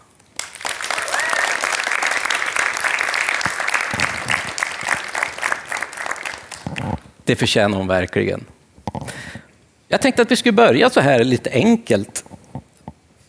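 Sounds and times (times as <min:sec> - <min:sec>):
live audience applause: 0:00.3 - 0:07.2
speech: 0:07.3 - 0:08.6, 0:09.9 - 0:12.2.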